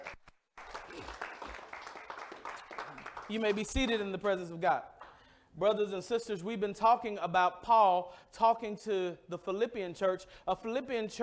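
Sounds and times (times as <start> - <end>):
audience hand clapping: 0.0 - 4.0
speech: 3.3 - 5.0, 5.6 - 11.2.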